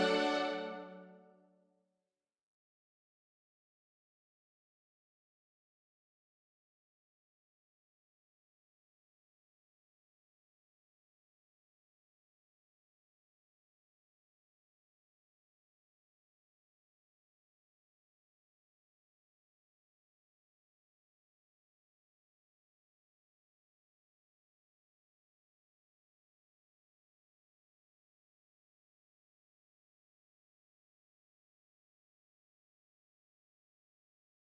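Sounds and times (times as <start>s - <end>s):
small waltz piece: 0.0s - 1.3s.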